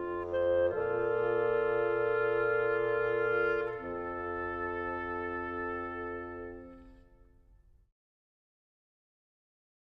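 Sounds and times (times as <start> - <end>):
woodwind trio: 0.0 - 7.8.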